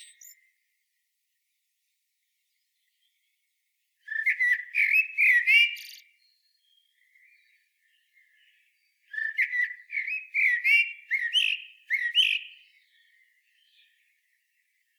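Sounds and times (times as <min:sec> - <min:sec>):
common blackbird Turdus merula singing mellow fluted warbles: 0:00.0 - 0:00.5, 0:04.0 - 0:14.1.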